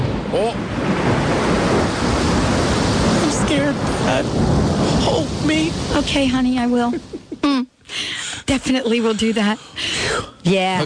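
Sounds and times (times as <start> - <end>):
thunder: 0.0 - 6.2
rain: 0.0 - 10.8
speech: 0.3 - 0.8, 3.7 - 7.6, 8.5 - 10.8.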